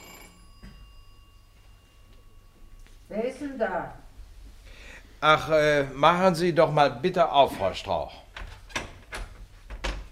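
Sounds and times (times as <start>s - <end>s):
electric doorbell ringing: 0.0s - 4.0s
speech: 3.1s - 4.0s, 5.2s - 8.2s.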